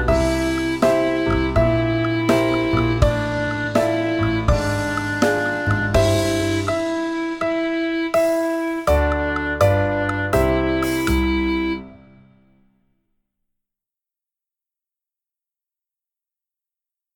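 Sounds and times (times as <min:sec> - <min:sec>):
clarinet: 0:00.0 - 0:12.3.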